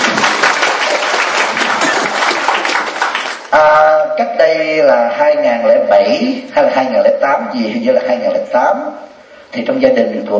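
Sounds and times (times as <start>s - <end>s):
audience applause: 0.0s - 3.5s
speech: 3.5s - 10.3s.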